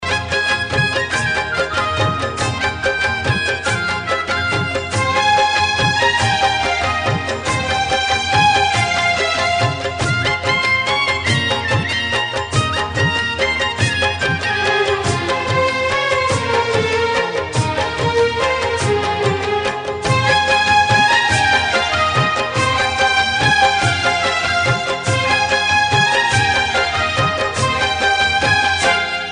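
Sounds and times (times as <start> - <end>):
music: 0.0 - 29.3.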